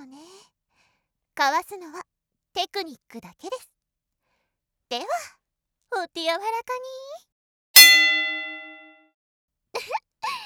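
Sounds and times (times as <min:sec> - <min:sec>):
speech: 0:01.4 - 0:03.8, 0:04.9 - 0:07.3
gong strike signalling the start of a match: 0:07.8 - 0:08.9.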